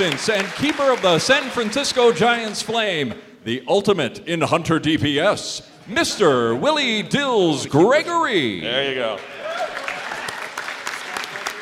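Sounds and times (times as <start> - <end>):
clapping: 0.0 - 2.6, 9.1 - 11.6
speech: 0.0 - 9.3.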